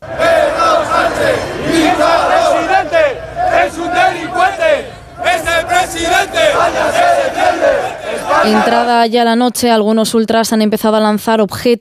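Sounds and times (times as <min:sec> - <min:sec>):
large protest crowd chanting against politician: 0:00.0 - 0:09.0
speech: 0:08.5 - 0:11.8.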